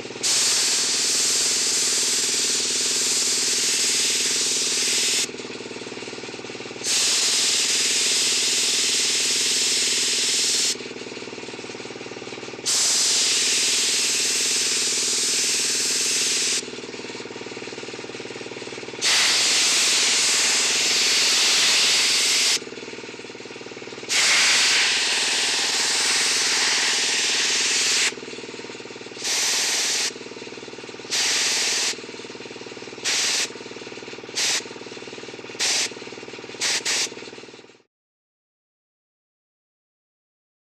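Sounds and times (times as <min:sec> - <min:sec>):
paint spray gun spraying: 0:00.1 - 0:05.3, 0:06.1 - 0:37.3.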